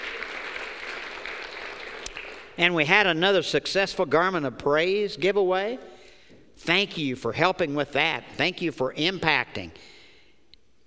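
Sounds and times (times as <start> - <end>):
church congregation applauding honoring its deacons: 0.0 - 3.2
speech: 2.6 - 5.9, 6.6 - 10.0.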